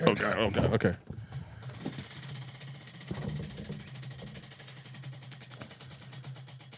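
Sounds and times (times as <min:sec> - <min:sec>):
speech: 0:00.0 - 0:01.1
prize wheel pointer clacking over pegs: 0:01.4 - 0:06.7.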